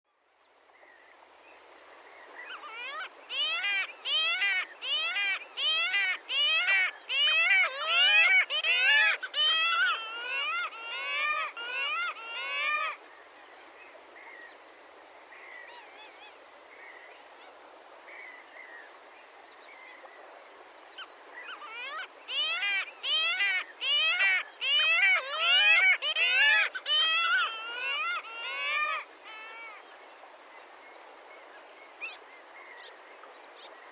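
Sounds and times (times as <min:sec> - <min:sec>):
Arctic skua calling: 0:02.6 - 0:13.0, 0:21.5 - 0:29.8.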